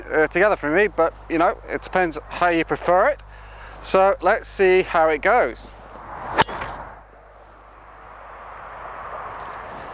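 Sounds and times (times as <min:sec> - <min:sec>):
quiet outdoor hiss: 0:00.0 - 0:09.9
speech: 0:00.1 - 0:03.2, 0:03.8 - 0:05.8
light Cobra golf club with a Rogue 95 shaft swung: 0:05.9 - 0:07.1.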